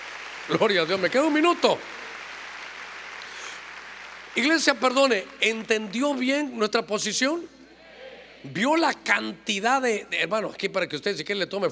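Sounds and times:
audience clapping: 0:00.0 - 0:07.4
speech: 0:00.5 - 0:02.0, 0:04.4 - 0:07.6, 0:08.4 - 0:11.6.

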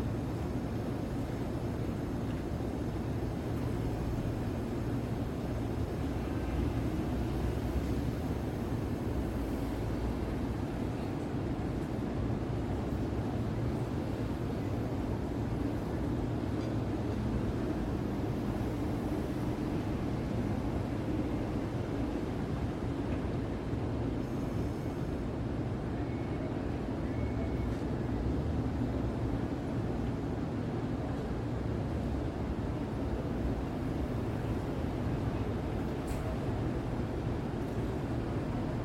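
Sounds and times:
Midtown Manhattan city sounds at night through an open window: 0:00.0 - 0:38.8.

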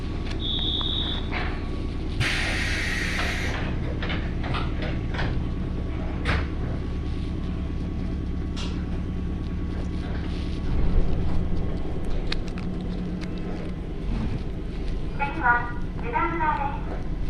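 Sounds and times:
Ibara Railway train running: 0:00.0 - 0:17.2
short beep: 0:00.4 - 0:01.3
hissing burst: 0:02.2 - 0:03.6.

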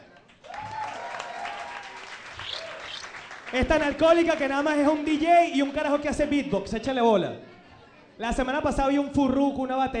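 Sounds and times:
audience applause: 0:00.2 - 0:05.6
speech: 0:03.5 - 0:07.5, 0:08.2 - 0:09.9.

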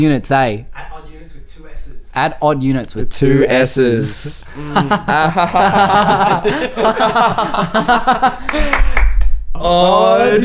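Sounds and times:
speech: 0:00.0 - 0:00.7, 0:02.2 - 0:09.0, 0:09.6 - 0:10.4
laughter: 0:04.2 - 0:09.0
hand clap: 0:08.4 - 0:09.4.

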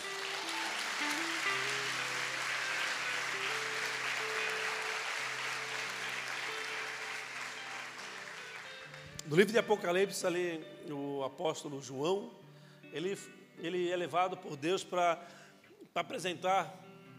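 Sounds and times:
audience applause: 0:00.0 - 0:09.2
speech: 0:09.3 - 0:15.4, 0:16.0 - 0:16.8.

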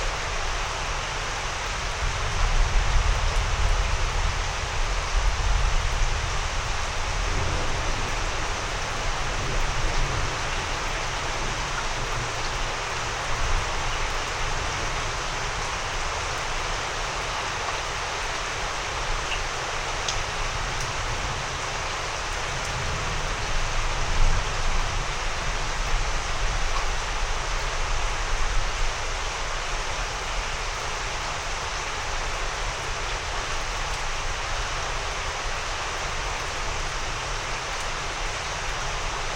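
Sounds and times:
rain in an East Texas thunderstorm: 0:00.0 - 0:39.3
slow rolling thunder in East Texas: 0:05.3 - 0:10.9.

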